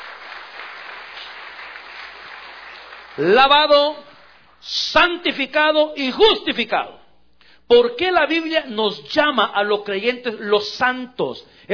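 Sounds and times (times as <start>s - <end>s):
audience applause: 0.0s - 3.4s
speech: 3.2s - 7.0s, 7.7s - 11.7s.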